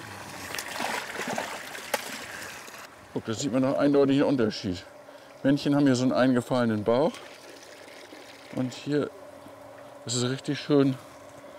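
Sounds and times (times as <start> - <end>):
fresh lake water poured into tubs: 0.0 - 2.8, 7.0 - 8.6
speech: 3.2 - 7.3, 8.5 - 9.2, 10.0 - 11.1.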